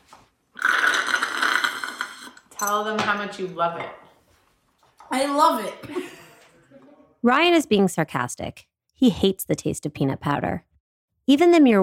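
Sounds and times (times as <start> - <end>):
slurping a drink from a shot glass: 0.6 - 2.5
speech: 2.6 - 4.0, 5.1 - 6.2, 7.2 - 10.7, 11.3 - 11.8.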